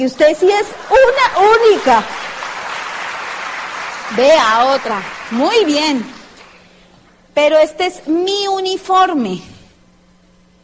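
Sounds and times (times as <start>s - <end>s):
speech: 0.0s - 2.2s, 4.1s - 6.2s, 7.4s - 9.5s
crowd applause: 0.2s - 6.8s.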